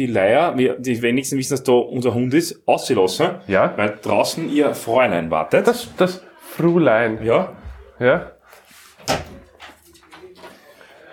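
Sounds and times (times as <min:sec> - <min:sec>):
speech: 0:00.0 - 0:08.4, 0:09.0 - 0:09.3
door being opened and closed: 0:09.0 - 0:10.6.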